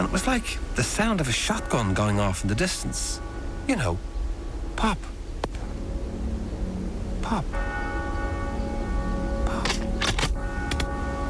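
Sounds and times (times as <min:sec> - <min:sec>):
speech: 0:00.0 - 0:04.1, 0:04.8 - 0:05.1, 0:07.3 - 0:07.7
church bell ringing for the Angelus: 0:00.0 - 0:04.7, 0:05.7 - 0:11.2
rumble: 0:00.0 - 0:11.2.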